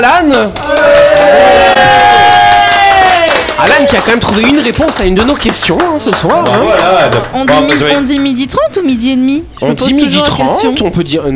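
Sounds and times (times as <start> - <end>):
speech: 0.0 - 2.0, 3.6 - 11.3
applause for the guest: 0.3 - 8.3
cheering for the guest: 0.5 - 4.6.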